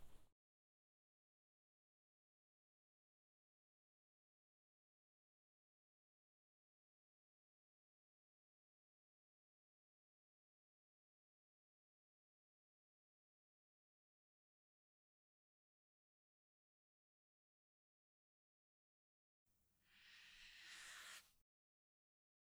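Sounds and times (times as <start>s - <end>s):
cotton swab ear cleaning on right side: 19.9s - 21.3s.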